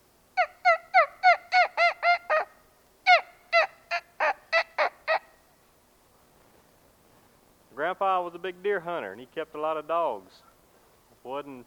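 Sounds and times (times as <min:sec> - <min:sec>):
turkey calling: 0:00.0 - 0:05.6
speech: 0:07.9 - 0:10.5, 0:11.2 - 0:11.6.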